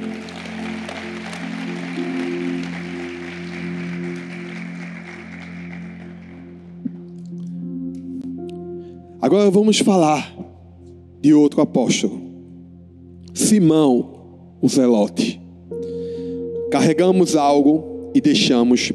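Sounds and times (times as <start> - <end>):
audience applause: 0.0 - 6.8
speech: 9.3 - 10.4, 11.2 - 12.2, 13.4 - 15.4, 16.8 - 18.9.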